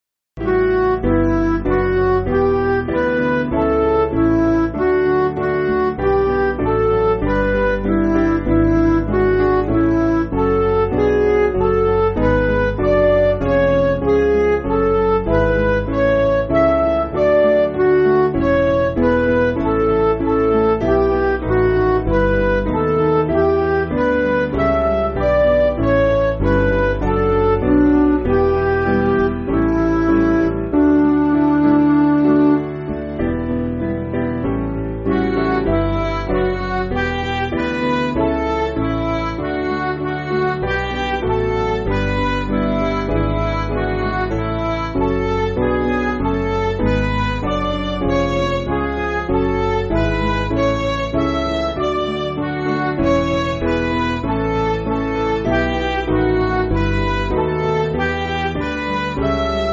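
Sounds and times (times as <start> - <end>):
MIDI music: 0.4 - 59.7.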